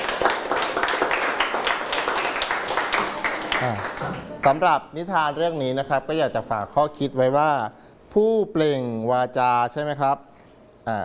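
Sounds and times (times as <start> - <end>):
audience clapping: 0.0 - 4.4
speech: 3.6 - 11.0.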